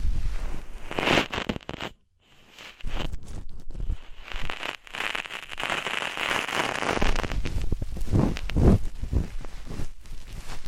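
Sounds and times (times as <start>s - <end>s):
ASMR ear cleaning scratching and rubbing: 0.4s - 10.6s
deep thumping pushes: 7.6s - 9.4s.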